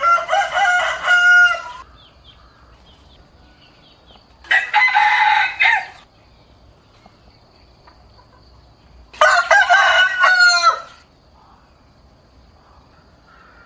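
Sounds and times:
rooster crowing: 0.0s - 2.0s, 4.4s - 6.1s, 9.2s - 11.0s.

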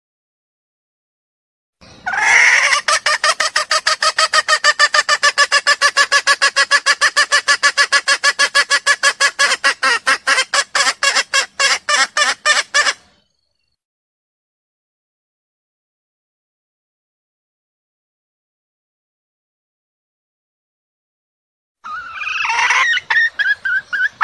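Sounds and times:
junglefowl clucking: 2.0s - 13.2s, 21.8s - 24.2s.

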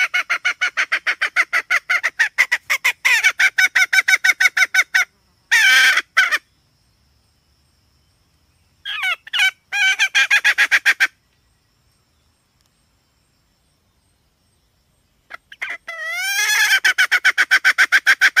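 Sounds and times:
red junglefowl hen cackling: 0.0s - 6.5s, 8.8s - 11.2s, 15.3s - 18.3s.

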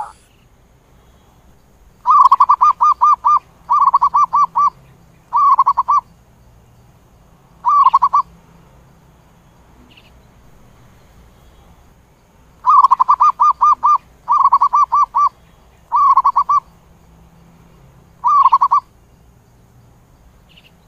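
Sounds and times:
zebra dove cooing: 0.0s - 0.2s, 2.0s - 6.0s, 7.6s - 8.3s, 12.6s - 16.7s, 18.2s - 18.9s.

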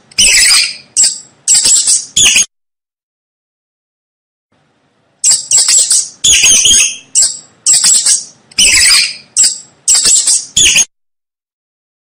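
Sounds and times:
mouse squeaking: 0.1s - 2.5s, 5.2s - 10.9s.

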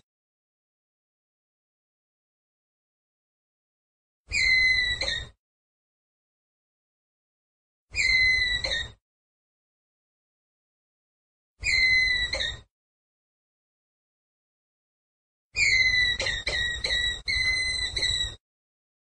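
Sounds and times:
ground squirrel whistled call: 4.3s - 5.3s, 8.0s - 9.0s, 11.6s - 12.6s, 15.6s - 18.4s.

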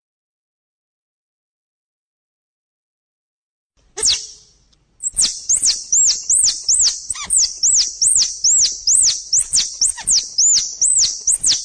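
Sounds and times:
squirrel chattering: 4.0s - 4.4s, 5.0s - 11.6s.

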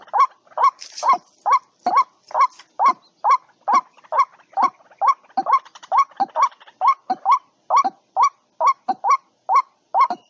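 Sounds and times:
white-breasted waterhen calling: 0.0s - 10.2s.

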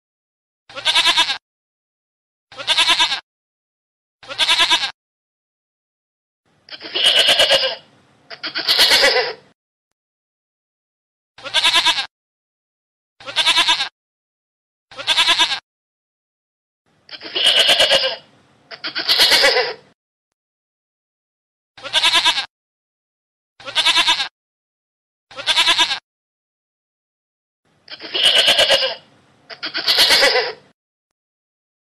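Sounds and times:
goat bleating: 0.7s - 1.4s, 2.5s - 3.2s, 4.2s - 5.0s, 6.7s - 9.4s, 11.4s - 12.1s, 13.2s - 13.9s, 14.9s - 15.6s, 17.1s - 19.9s, 21.8s - 22.5s, 23.6s - 24.3s, 25.3s - 26.0s, 27.9s - 30.7s.

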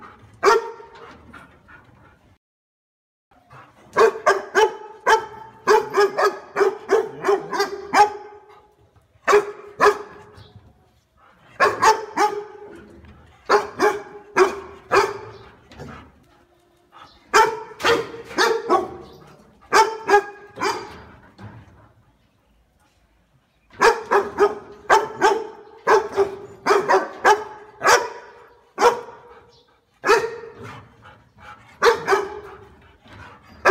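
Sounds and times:
dog barking: 0.4s - 0.9s, 4.0s - 8.5s, 9.3s - 10.2s, 11.6s - 12.7s, 13.5s - 15.4s, 17.3s - 19.1s, 19.7s - 21.0s, 23.8s - 30.6s, 31.8s - 32.6s.

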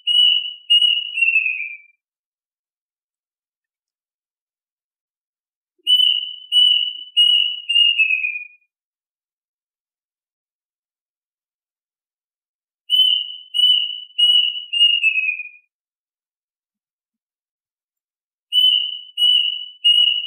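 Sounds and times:
duck whistled calls: 0.0s - 1.8s, 5.9s - 8.5s, 12.9s - 15.6s, 18.6s - 20.2s.

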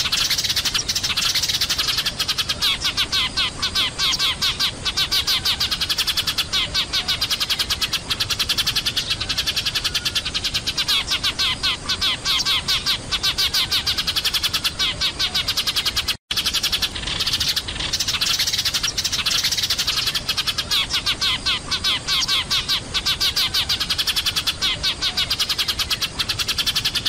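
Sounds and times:
sparrows chirping: 0.0s - 27.0s.

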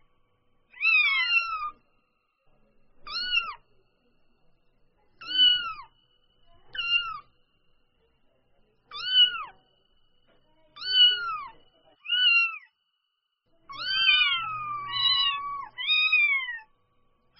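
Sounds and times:
domestic cat kitten mewing: 0.7s - 1.7s, 3.0s - 3.6s, 5.2s - 5.9s, 6.7s - 7.2s, 8.9s - 9.5s, 10.8s - 12.7s, 13.7s - 16.6s.

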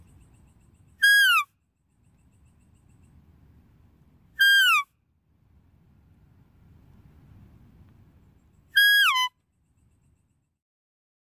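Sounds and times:
deer whistled calls: 1.0s - 1.5s, 4.4s - 4.9s, 8.8s - 9.3s.

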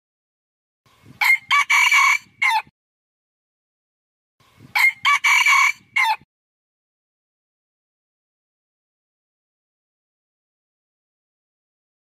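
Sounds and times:
red junglefowl crowing: 1.2s - 2.7s, 4.8s - 6.2s.

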